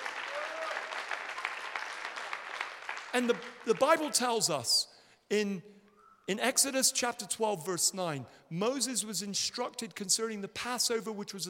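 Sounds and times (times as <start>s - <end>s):
audience applauding: 0.0s - 4.1s
speech: 3.1s - 11.4s.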